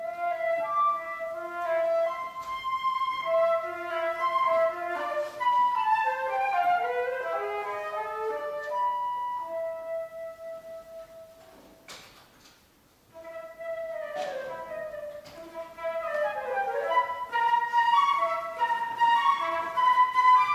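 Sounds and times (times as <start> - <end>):
transverse flute sonata: 0.0 - 11.8, 13.1 - 20.5.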